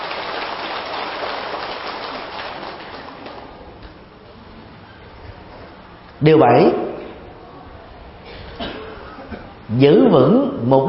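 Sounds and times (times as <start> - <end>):
audience applause: 0.0 - 3.7
speech: 6.2 - 6.9, 9.8 - 10.8.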